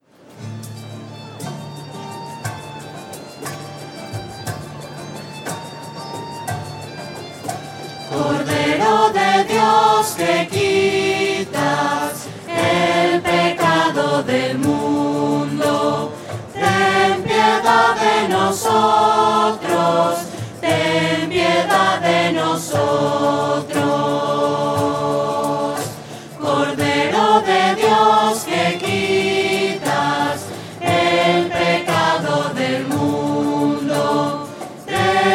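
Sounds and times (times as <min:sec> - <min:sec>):
voices singing: 0:08.1 - 0:35.3.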